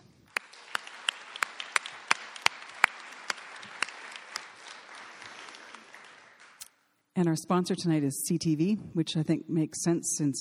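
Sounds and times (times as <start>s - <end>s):
sparse audience applause: 0.0s - 6.7s
speech: 7.2s - 10.3s.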